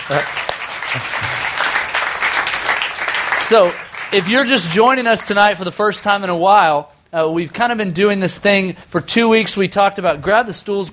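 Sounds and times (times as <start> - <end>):
audience clapping: 0.0 - 5.5
speech: 0.1 - 1.4, 3.5 - 10.9.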